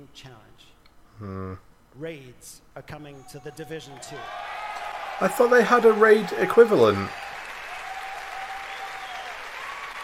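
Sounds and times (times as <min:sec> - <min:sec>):
speech: 0:00.1 - 0:04.6, 0:05.2 - 0:07.3
crowd applause: 0:04.0 - 0:10.0.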